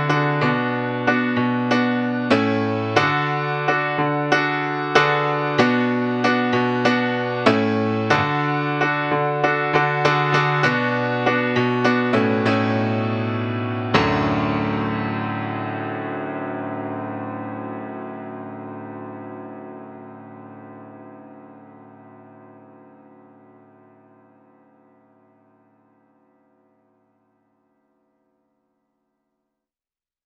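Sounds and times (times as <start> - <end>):
instrumental music: 0.0 - 21.6.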